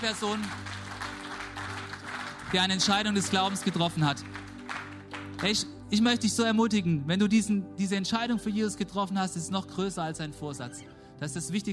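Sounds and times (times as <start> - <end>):
speech: 0.0 - 0.7, 2.5 - 4.4, 5.4 - 11.7
audience applauding: 0.0 - 5.7.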